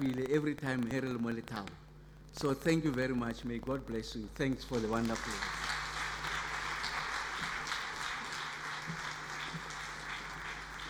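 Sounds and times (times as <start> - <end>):
speech: 0.0 - 5.6
audience applause: 5.0 - 10.8.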